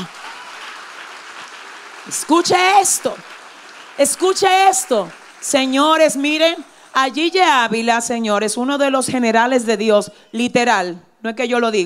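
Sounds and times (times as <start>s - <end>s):
audience applause: 0.0s - 7.5s
speech: 2.1s - 3.4s, 4.0s - 11.8s.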